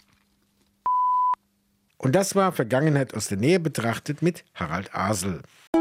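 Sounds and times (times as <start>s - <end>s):
radio time signal beeps: 0.9s - 1.4s
speech: 2.0s - 5.7s.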